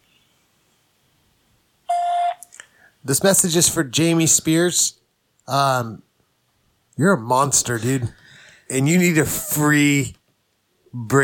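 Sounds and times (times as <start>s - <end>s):
voicemail beep before a message is recorded: 1.9s - 2.4s
speech: 3.0s - 6.1s, 7.0s - 10.2s, 10.9s - 11.2s.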